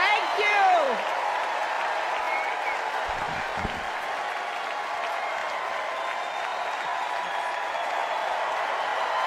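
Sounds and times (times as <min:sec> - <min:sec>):
crowd applauding and cheering: 0:00.0 - 0:09.2.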